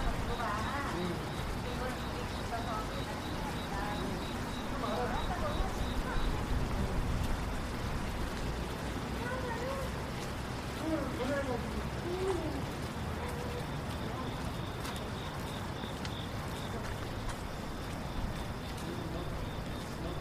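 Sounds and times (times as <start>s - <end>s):
cars passing along a rainy street: 0.0s - 20.2s
people murmuring: 0.0s - 20.2s
steady low rumble of traffic: 0.0s - 20.2s.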